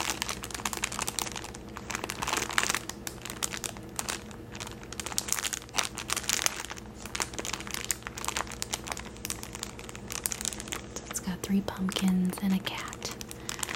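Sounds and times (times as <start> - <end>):
thin plastic packaging around paper napkins crinkling: 0.0 - 13.7
speech: 11.5 - 12.9.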